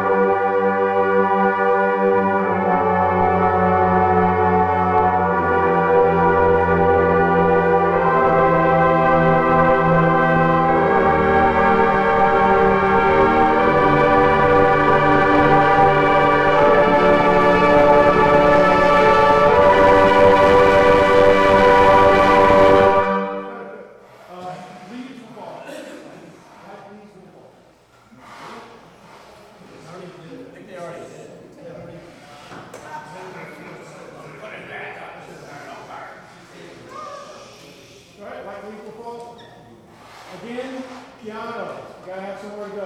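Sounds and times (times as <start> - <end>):
brass warmup practice in Woburn MA: 0.0 - 25.0.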